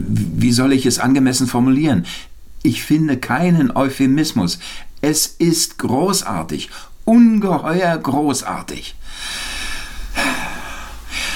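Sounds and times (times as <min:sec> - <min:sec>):
speech: 0:00.4 - 0:09.5
heavy exhausted breathing: 0:09.0 - 0:11.3.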